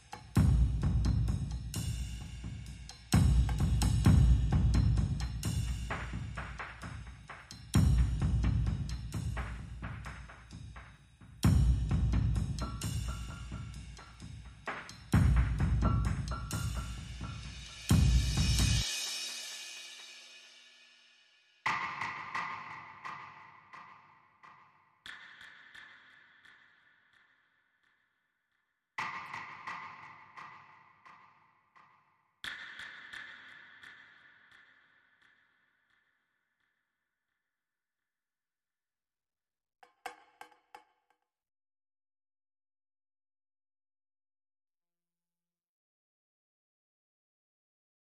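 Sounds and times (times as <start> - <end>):
drums and percussion: 0.0 - 26.6, 29.0 - 34.6, 39.8 - 41.0.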